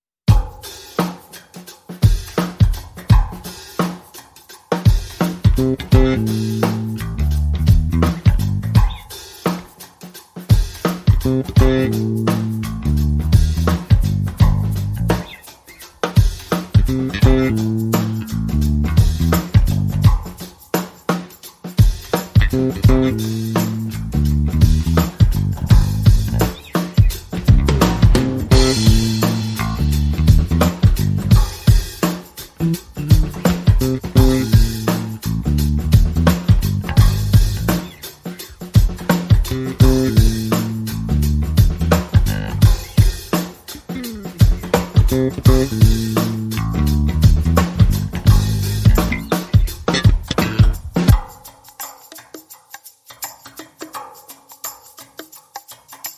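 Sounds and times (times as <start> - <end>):
drums: 0.2 - 56.1
bass: 5.5 - 9.1, 11.1 - 15.5, 16.7 - 20.3, 22.4 - 43.0, 43.8 - 51.2.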